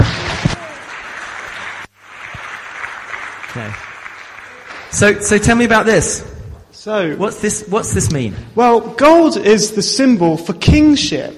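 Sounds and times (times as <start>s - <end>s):
audience applause: 0.0s - 5.6s
speech: 3.6s - 3.9s, 4.9s - 11.3s.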